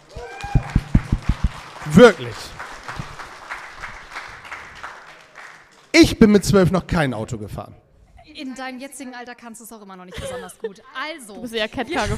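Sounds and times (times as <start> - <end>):
audience applause: 0.0 - 6.0
speech: 1.8 - 2.6, 6.1 - 7.8, 8.4 - 12.1.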